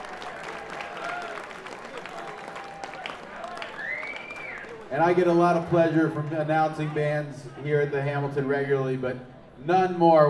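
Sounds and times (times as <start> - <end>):
audience applause: 0.0 - 5.8
speech: 4.9 - 10.2.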